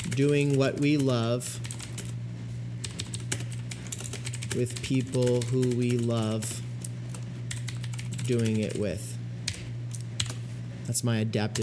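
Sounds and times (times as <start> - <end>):
typing on a computer keyboard: 0.0 - 2.1, 2.8 - 6.4, 7.1 - 8.8
low steady hum: 0.0 - 11.6
speech: 0.2 - 1.7, 4.5 - 6.6, 8.3 - 9.1, 10.9 - 11.6.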